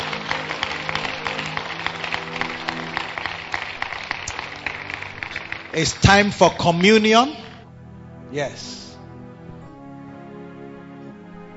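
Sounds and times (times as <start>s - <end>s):
audience clapping hands: 0.0s - 7.6s
speech: 5.8s - 7.4s, 8.3s - 8.8s.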